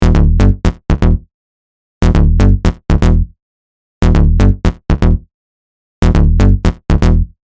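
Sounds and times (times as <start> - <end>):
bass: 0.0 - 1.3, 2.0 - 3.4, 4.0 - 5.3, 6.0 - 7.4.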